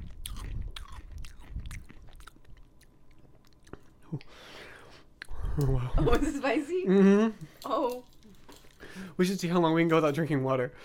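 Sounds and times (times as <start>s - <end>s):
wet crunchy biting and chewing food: 0.0s - 4.3s
speech: 4.1s - 4.6s, 5.6s - 8.1s, 9.1s - 10.8s.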